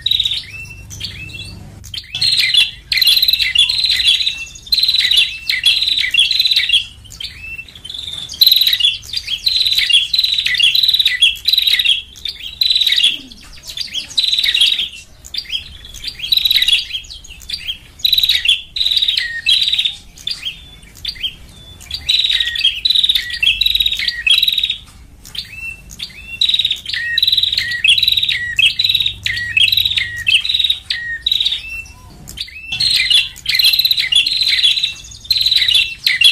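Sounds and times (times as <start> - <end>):
lovebirds chattering: 0.0 - 36.2.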